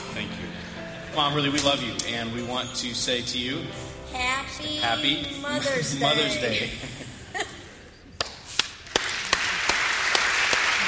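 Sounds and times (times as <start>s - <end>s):
speech: 1.2s - 7.0s
laughter: 6.3s - 8.0s
audience applause: 8.6s - 10.8s.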